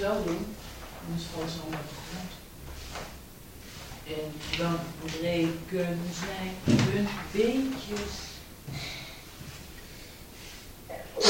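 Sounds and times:
speech: 0.0s - 3.1s, 4.1s - 9.0s
soft sniffing: 8.8s - 11.2s
person sneezing: 10.9s - 11.2s.

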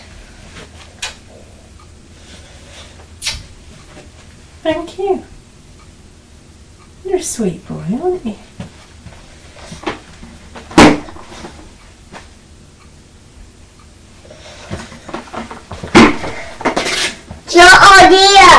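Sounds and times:
speech: 4.7s - 5.4s, 7.1s - 8.6s
chair falling over indoors: 10.6s - 11.6s, 14.7s - 17.4s.

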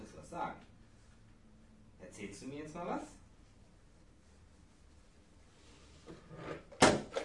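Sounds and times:
speech: 0.1s - 0.7s, 2.1s - 3.2s
phone falling onto the floor: 6.8s - 7.2s.

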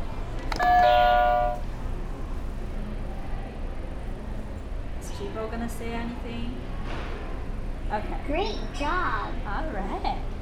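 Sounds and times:
low steady hum: 0.0s - 10.3s
game buzzer chime: 0.6s - 1.6s
speech: 5.4s - 7.2s, 7.9s - 10.3s.

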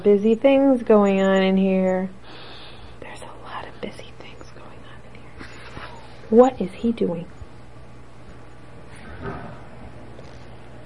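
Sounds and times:
speech: 0.0s - 2.2s, 6.3s - 7.4s
door closing down the hall: 9.0s - 9.8s.

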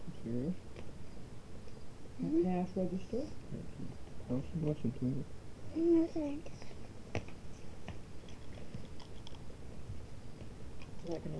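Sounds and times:
speech: 0.2s - 0.8s, 2.2s - 6.7s, 11.1s - 11.3s
person eating ripe olives: 8.2s - 9.5s.

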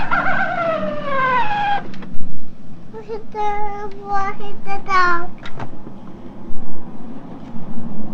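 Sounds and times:
toy playing recorded coyote call: 0.0s - 1.8s
speech: 3.2s - 5.7s.

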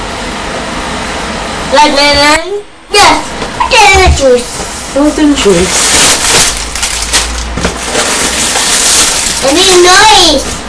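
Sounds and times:
speech: 1.7s - 6.0s, 9.4s - 10.5s
Rice Krispies snap crackle and pop: 5.6s - 10.0s.

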